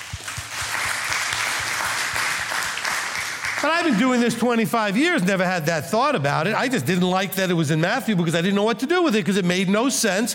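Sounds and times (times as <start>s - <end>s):
audience applause: 0.0s - 4.5s
speech: 3.6s - 10.3s.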